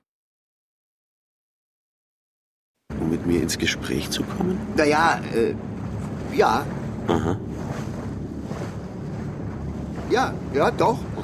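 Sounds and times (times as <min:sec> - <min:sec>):
boat engine travelling up a river: 0:02.9 - 0:11.2
rushing water: 0:02.9 - 0:11.2
speech: 0:03.1 - 0:05.7, 0:06.4 - 0:07.7, 0:10.1 - 0:11.2.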